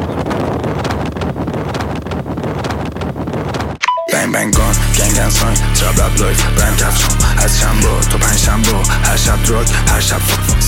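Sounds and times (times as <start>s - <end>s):
wind buffeting the microphone while riding a motorcycle: 0.0s - 3.8s
speech: 4.4s - 10.6s.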